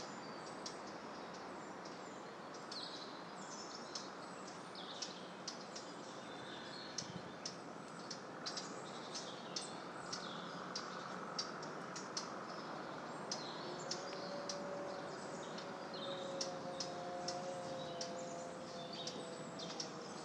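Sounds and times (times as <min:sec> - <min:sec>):
birds: 0:00.0 - 0:20.2
wind: 0:00.0 - 0:20.2.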